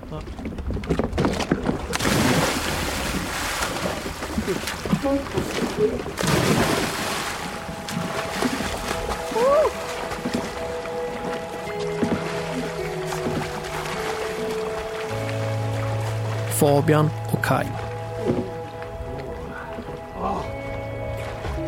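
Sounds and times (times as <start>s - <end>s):
lake water sloshing and lapping: 0.0s - 21.6s
speech: 0.1s - 1.0s, 5.0s - 7.0s, 16.6s - 18.4s
cannonball jump splashing into a lake: 1.2s - 15.4s.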